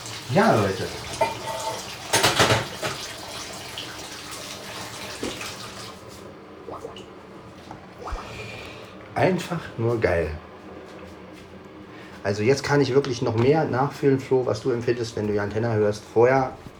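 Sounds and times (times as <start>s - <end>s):
washing out a bowl under water: 0.0s - 9.0s
speech: 0.3s - 1.4s, 9.2s - 10.5s, 12.2s - 16.7s.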